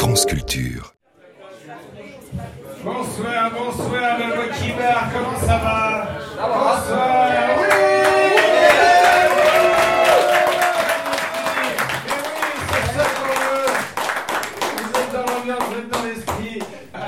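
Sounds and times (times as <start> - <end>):
speech: 0.1 - 1.0, 2.9 - 7.8
audience applause: 7.6 - 16.6.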